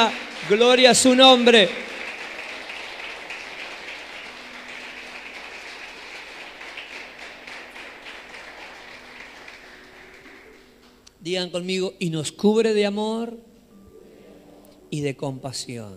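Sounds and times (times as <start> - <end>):
speech: 0.0 - 2.0, 11.3 - 13.5, 14.9 - 15.9
audience applause: 0.0 - 11.0.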